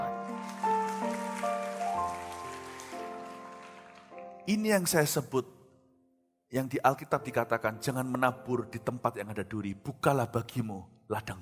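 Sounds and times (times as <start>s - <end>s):
audience applause: 0.0s - 4.4s
speech: 4.5s - 5.6s, 6.5s - 11.3s.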